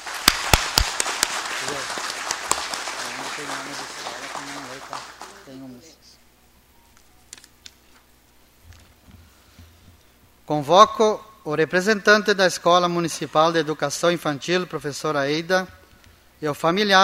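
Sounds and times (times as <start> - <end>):
round of applause: 0.0 - 5.6
speech: 10.5 - 15.8, 16.4 - 17.0.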